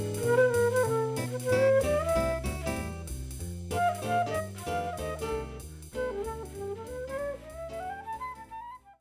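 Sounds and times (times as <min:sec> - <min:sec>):
jazz flute improvisation: 0:00.0 - 0:08.9.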